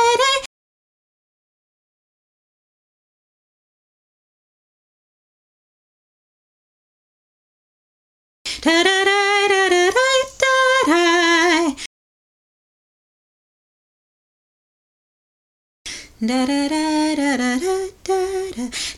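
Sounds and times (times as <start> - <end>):
soprano singing vocal drill: 0.0 - 0.5, 8.5 - 11.9, 15.9 - 18.9.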